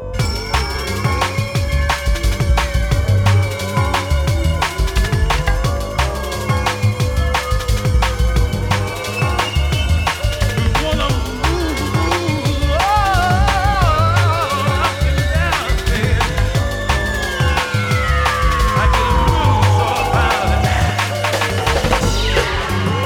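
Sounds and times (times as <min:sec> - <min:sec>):
trap music mix: 0:00.2 - 0:23.0.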